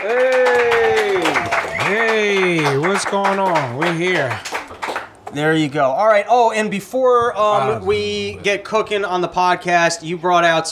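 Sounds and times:
speech: 0.0s - 0.3s, 2.7s - 4.5s, 5.3s - 10.7s
audience applause: 0.0s - 5.3s.

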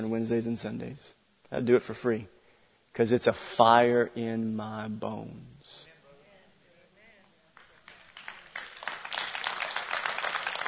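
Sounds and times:
speech: 0.0s - 2.4s, 3.0s - 5.8s
audience clapping: 7.5s - 10.6s.

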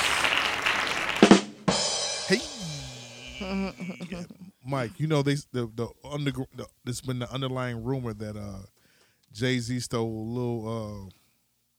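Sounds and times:
hand claps sound effect: 0.0s - 1.6s
speech: 2.3s - 2.7s, 3.4s - 11.2s
laughter: 2.4s - 4.6s.

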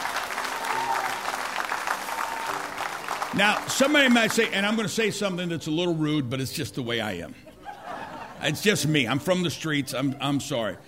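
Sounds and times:
audience applauding: 0.0s - 4.9s
speech: 3.3s - 7.5s, 8.4s - 10.8s
laughter: 7.3s - 9.4s.

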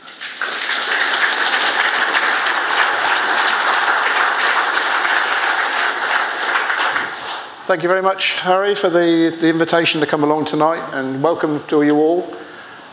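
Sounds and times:
audience applause welcoming a speaker: 0.0s - 8.0s
speech: 7.7s - 12.4s.

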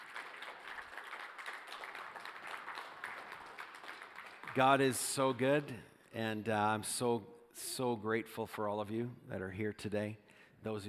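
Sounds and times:
audience clapping hands: 0.0s - 5.6s
speech: 4.6s - 10.8s.

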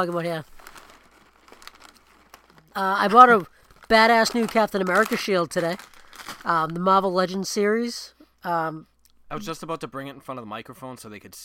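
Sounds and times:
speech: 0.0s - 0.6s, 2.8s - 11.4s
crunching on pretzels: 0.5s - 6.9s.

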